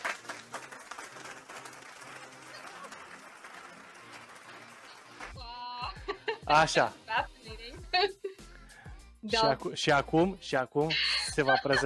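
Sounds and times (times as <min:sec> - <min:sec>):
applause sound effect from recording app: 0:00.0 - 0:05.5
laughter: 0:05.4 - 0:06.5, 0:10.9 - 0:11.8
speech: 0:06.5 - 0:07.0, 0:09.3 - 0:11.8.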